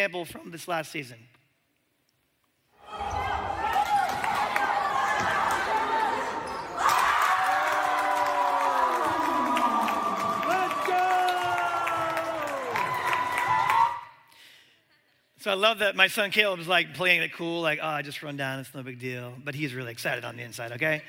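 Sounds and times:
speech: 0.0s - 1.4s, 15.4s - 21.0s
basketball game crowd cheering: 2.8s - 14.2s
father yelling in the stands: 10.4s - 12.7s.

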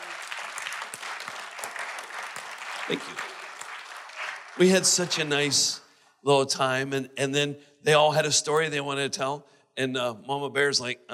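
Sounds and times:
crowd applause: 0.0s - 5.9s
speech: 2.9s - 3.3s, 4.6s - 11.1s.

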